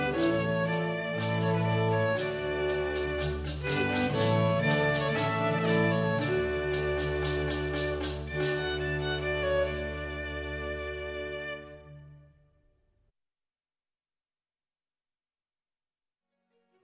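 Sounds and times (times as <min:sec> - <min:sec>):
pavane music: 0:00.0 - 0:12.3.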